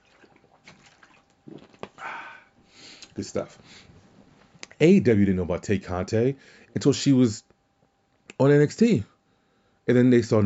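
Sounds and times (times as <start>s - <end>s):
person taking a swig of water: 0.1s - 3.2s
speech: 3.2s - 3.9s, 4.8s - 7.5s, 8.4s - 9.1s, 9.9s - 10.4s.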